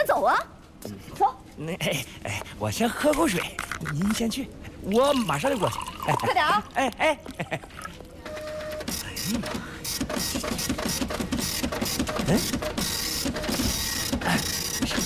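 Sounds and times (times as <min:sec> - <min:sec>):
speech: 0:00.2 - 0:08.0, 0:09.3 - 0:14.5
printer printing a document: 0:07.5 - 0:15.0.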